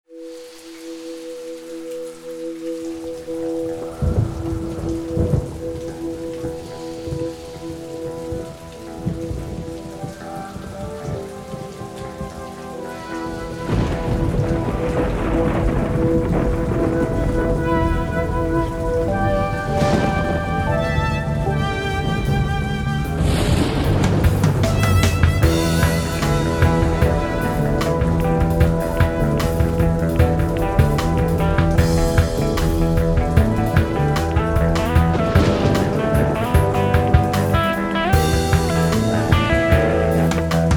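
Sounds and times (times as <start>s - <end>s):
electric guitar: 3.4s - 40.7s.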